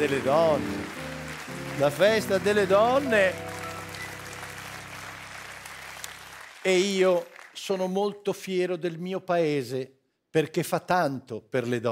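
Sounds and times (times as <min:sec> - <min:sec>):
speech: 0:00.0 - 0:01.2, 0:01.8 - 0:03.5, 0:06.6 - 0:11.9
applause marking Women's Day in Italy: 0:00.0 - 0:08.2.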